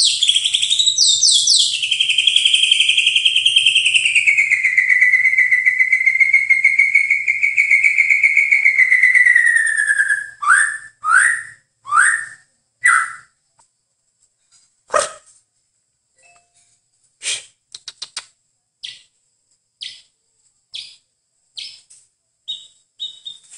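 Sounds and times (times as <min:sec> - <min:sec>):
bird song: 0:00.0 - 0:13.4, 0:18.8 - 0:19.2, 0:19.8 - 0:23.5.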